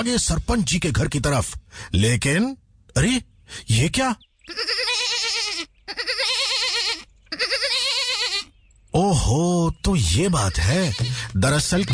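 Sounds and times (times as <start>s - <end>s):
speech: 0.0s - 4.8s, 8.9s - 11.9s
herd of goats bleating: 4.5s - 8.5s, 10.2s - 11.9s.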